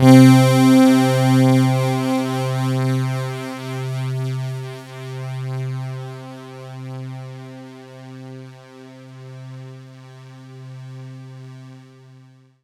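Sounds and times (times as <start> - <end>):
synth line in C3: 0.0 - 3.5.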